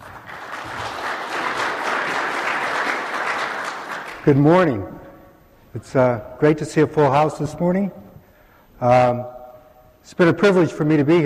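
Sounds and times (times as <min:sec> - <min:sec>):
large crowd applause welcoming a speaker at a mining industry presentation: 0:00.0 - 0:04.2
speech: 0:04.2 - 0:05.0, 0:05.7 - 0:08.0, 0:08.8 - 0:09.4, 0:10.0 - 0:11.2.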